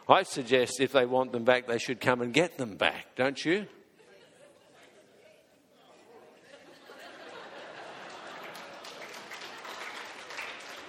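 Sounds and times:
speech: 0.1 - 3.8
laughter: 3.9 - 10.8
audience clapping: 7.8 - 10.8.

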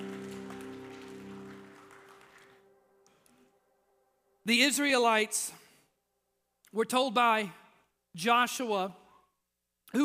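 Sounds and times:
audience applauding: 0.0 - 3.3
speech: 4.5 - 5.6, 6.7 - 7.6, 8.2 - 9.0.

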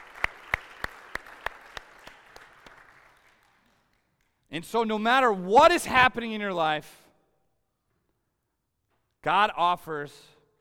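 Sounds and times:
audience applause: 0.0 - 4.0
speech: 4.5 - 7.0, 9.2 - 10.4.

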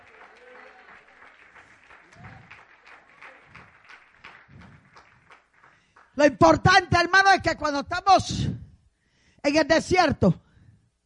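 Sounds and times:
audience applause: 0.0 - 6.1
speech: 6.2 - 8.6, 9.4 - 10.4.

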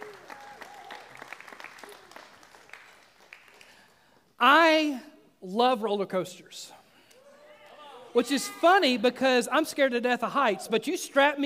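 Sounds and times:
audience hand clapping: 0.0 - 4.2
speech: 4.4 - 6.8, 8.2 - 11.4.

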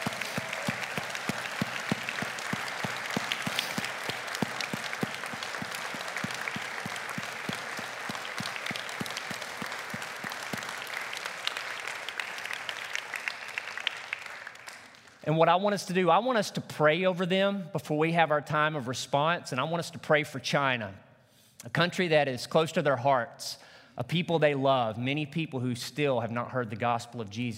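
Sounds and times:
audience applause: 0.0 - 15.2
speech: 15.3 - 21.0, 21.6 - 27.5.

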